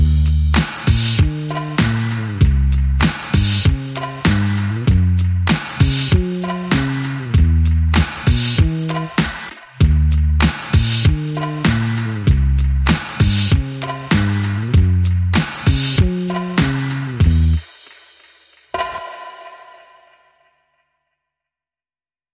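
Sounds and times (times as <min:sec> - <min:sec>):
bass: 0:00.0 - 0:17.6
drums: 0:00.0 - 0:20.4.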